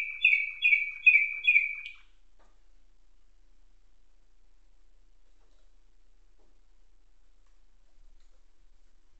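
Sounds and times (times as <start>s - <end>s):
Atlantic canary singing nightingale-tutored song: 0.0s - 2.2s.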